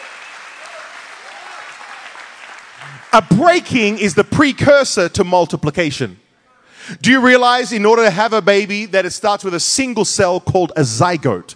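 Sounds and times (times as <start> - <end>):
audience clapping hands: 0.0 - 4.3
speech: 2.8 - 6.2, 6.9 - 11.5.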